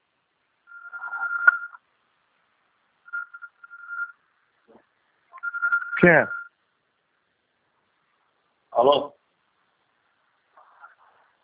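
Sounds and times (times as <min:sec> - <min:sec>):
telephone ringing: 0:00.7 - 0:01.8, 0:03.1 - 0:04.2, 0:05.4 - 0:06.5
speech: 0:06.0 - 0:06.4.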